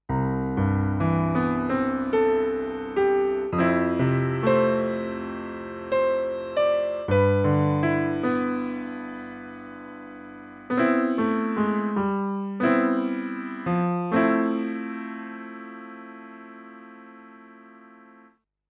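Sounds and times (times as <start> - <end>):
Roland S-330 mellow piano: 0.1 - 18.2.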